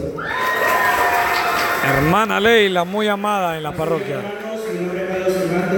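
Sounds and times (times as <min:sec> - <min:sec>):
crowd cheering and whooping: 0:00.2 - 0:04.2
crowd clapping: 0:00.3 - 0:05.7
speech: 0:02.2 - 0:05.7.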